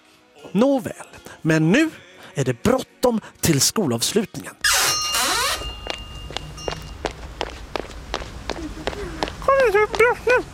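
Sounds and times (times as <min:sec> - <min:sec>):
speech: 0:00.5 - 0:04.6
running footsteps on a hard surface: 0:05.4 - 0:10.5.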